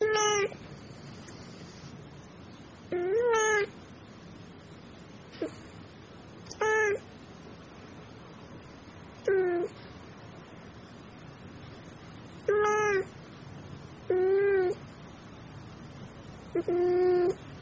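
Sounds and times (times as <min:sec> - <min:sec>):
cat crying: 0:00.0 - 0:00.6, 0:02.9 - 0:03.8, 0:06.5 - 0:07.1, 0:09.2 - 0:09.8, 0:12.4 - 0:13.2, 0:14.1 - 0:14.8, 0:16.5 - 0:17.4.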